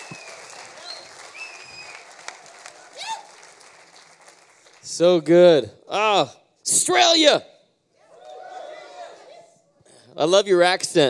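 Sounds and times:
whistles and cheers: 0:00.0 - 0:03.6
audience applause for worship team: 0:00.0 - 0:05.2
speech: 0:05.0 - 0:07.5, 0:10.2 - 0:11.0.

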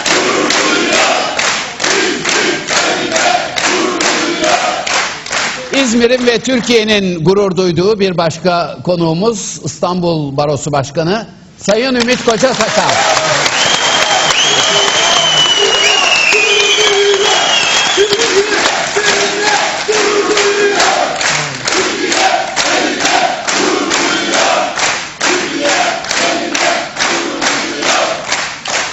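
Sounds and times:
enthusiastic crowd applauding: 0:00.0 - 0:06.3, 0:12.0 - 0:28.9
speech: 0:05.8 - 0:13.3
crowd cheering and shouting: 0:12.6 - 0:22.4.

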